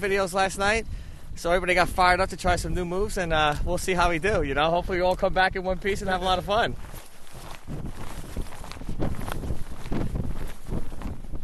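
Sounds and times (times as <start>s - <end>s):
speech: 0.0s - 7.0s
loud steady rush of wind: 0.4s - 11.4s
footsteps crunching through fresh powder snow on an uphill hike: 3.5s - 11.4s.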